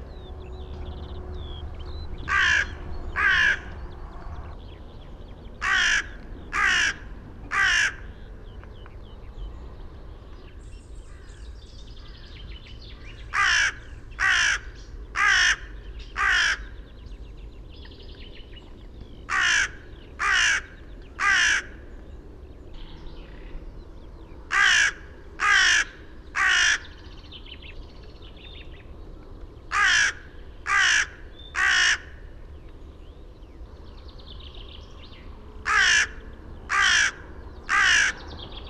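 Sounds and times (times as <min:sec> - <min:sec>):
crow calling: 0:02.2 - 0:03.8, 0:05.6 - 0:08.2, 0:12.9 - 0:16.8, 0:19.3 - 0:21.8, 0:24.5 - 0:27.1, 0:29.7 - 0:32.2, 0:35.6 - 0:38.2.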